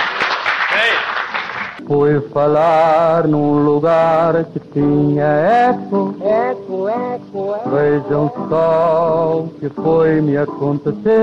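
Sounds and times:
audience applause: 0:00.0 - 0:01.8
speech: 0:01.8 - 0:11.2.

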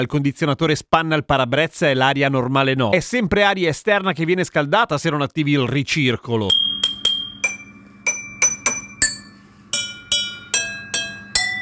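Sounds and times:
speech: 0:00.0 - 0:06.8
jingle tapped out on chemistry lab glassware: 0:06.5 - 0:11.6.

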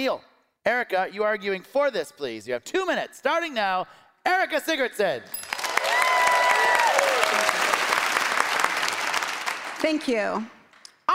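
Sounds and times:
speech: 0:00.0 - 0:05.5, 0:09.8 - 0:11.1
audience applause: 0:05.4 - 0:10.0.

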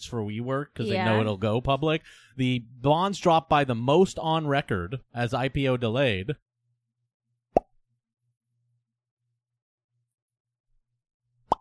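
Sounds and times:
speech: 0:00.0 - 0:06.5
mouth imitating a popping bubble: 0:07.6 - 0:07.8, 0:11.5 - 0:11.6.

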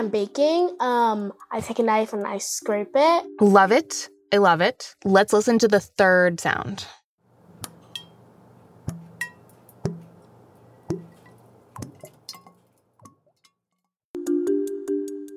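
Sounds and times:
speech: 0:00.0 - 0:07.0
thick gloopy liquid pouring: 0:10.8 - 0:13.2.

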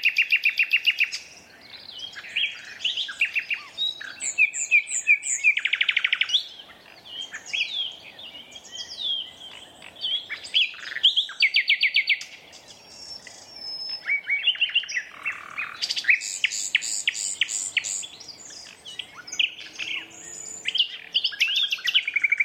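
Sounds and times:
common nightingale song: 0:00.0 - 0:22.4.

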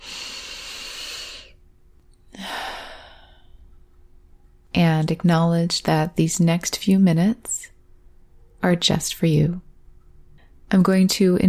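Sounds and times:
deep grounding breath in a mindfulness exercise: 0:00.0 - 0:01.6, 0:02.3 - 0:03.7
speech: 0:04.8 - 0:07.7, 0:08.6 - 0:09.7, 0:10.7 - 0:11.4.

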